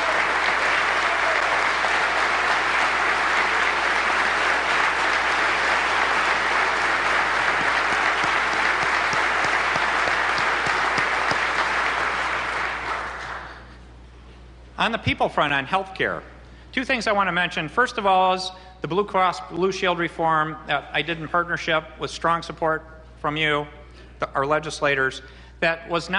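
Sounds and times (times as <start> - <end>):
large audience applause: 0.0 - 13.7
speech: 14.8 - 26.1.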